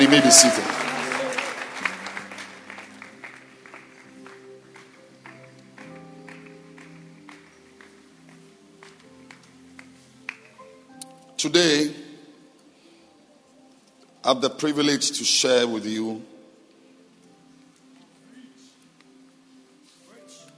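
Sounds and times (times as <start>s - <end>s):
speech: 0.0s - 0.9s, 11.4s - 12.0s, 14.3s - 16.3s
audience clapping hands: 0.0s - 10.8s.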